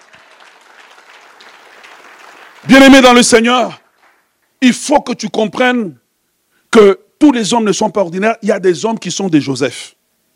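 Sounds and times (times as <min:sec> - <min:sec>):
crowd clapping: 0:00.0 - 0:04.6
speech: 0:02.6 - 0:03.8, 0:04.6 - 0:06.0, 0:06.7 - 0:10.0.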